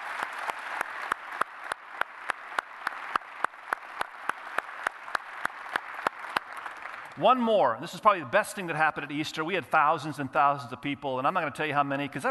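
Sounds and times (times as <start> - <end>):
thunderous audience applause: 0.0 - 7.3
speech: 7.2 - 12.2.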